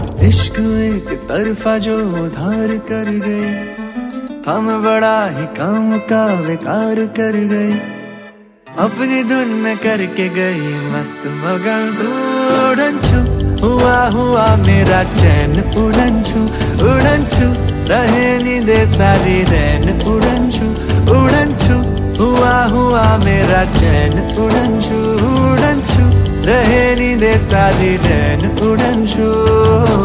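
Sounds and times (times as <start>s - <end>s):
Bollywood song ringtone: 0.2s - 30.0s.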